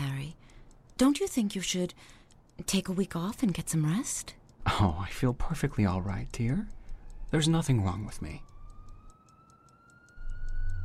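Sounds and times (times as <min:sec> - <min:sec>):
speech: 0:01.0 - 0:08.5
fire engine siren: 0:07.0 - 0:10.8
high-pitched pulsing: 0:10.2 - 0:10.8.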